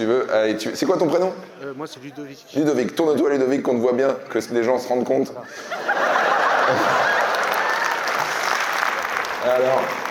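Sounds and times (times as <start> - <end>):
speech: 0.0 - 6.1, 6.7 - 7.2, 9.4 - 10.0
laughter: 5.4 - 8.5
audience applause: 6.1 - 10.0.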